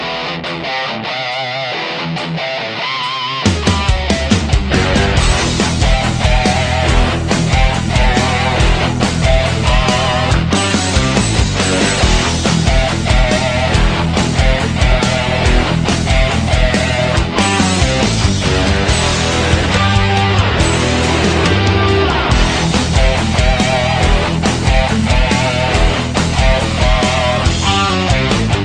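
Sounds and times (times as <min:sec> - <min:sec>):
Turkish rock ringtone: 0:00.0 - 0:28.6.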